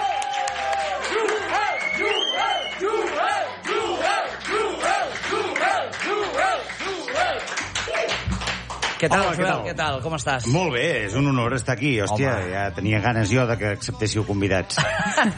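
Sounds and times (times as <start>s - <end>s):
audience applause: 0.0s - 9.4s
speech: 9.0s - 15.3s
laughter: 14.7s - 15.3s.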